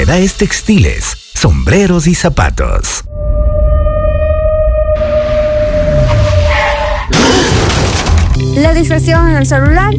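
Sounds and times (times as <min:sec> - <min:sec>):
steady high-pitched whine: 0:00.0 - 0:07.1
speech: 0:00.1 - 0:03.1, 0:08.6 - 0:09.9
car crashing into a pole: 0:06.1 - 0:08.4.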